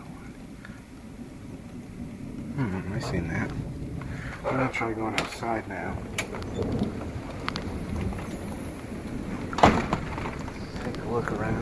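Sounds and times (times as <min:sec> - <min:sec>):
steady rain pattering outdoors: 0:00.0 - 0:11.6
speech: 0:02.6 - 0:03.8, 0:04.4 - 0:07.2, 0:11.1 - 0:11.6.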